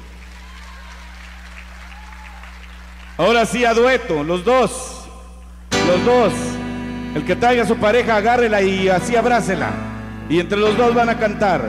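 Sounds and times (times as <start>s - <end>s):
audience applause: 0.0s - 3.3s
speech: 3.2s - 4.9s, 5.9s - 6.5s, 7.1s - 11.6s.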